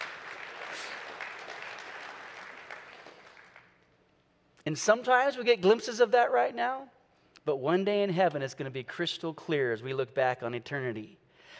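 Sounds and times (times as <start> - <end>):
audience clapping: 0.0 - 4.0
speech: 4.7 - 11.2.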